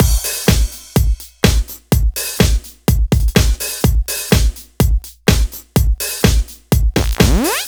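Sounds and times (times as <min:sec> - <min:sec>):
rock and roll drum loop at 125 bpm: 0:00.0 - 0:07.6.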